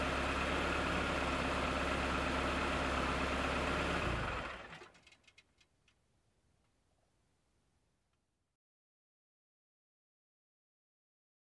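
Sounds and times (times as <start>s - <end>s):
car approaching and parking: 0.0s - 5.4s.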